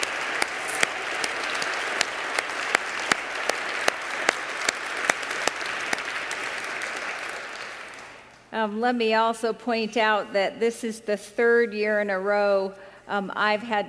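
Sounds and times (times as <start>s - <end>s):
audience round of applause: 0.0s - 8.3s
speech: 8.6s - 13.8s.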